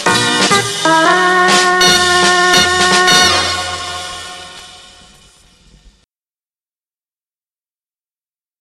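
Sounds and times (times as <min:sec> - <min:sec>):
Hammond organ bounce shuffle medley: 0:00.0 - 0:05.2.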